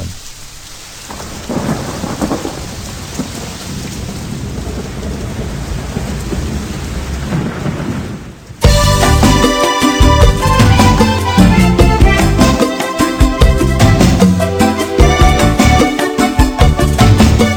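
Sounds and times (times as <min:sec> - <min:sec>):
deep thunder rumbling: 0:00.0 - 0:17.5
steady hissing rain on cardboard roofs: 0:00.0 - 0:17.5
music: 0:08.6 - 0:17.5.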